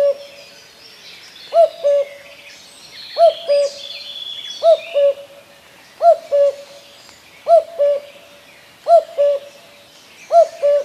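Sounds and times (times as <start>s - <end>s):
common cuckoo calling: 0.0s - 0.4s, 1.5s - 2.4s, 3.1s - 5.4s, 6.0s - 10.8s.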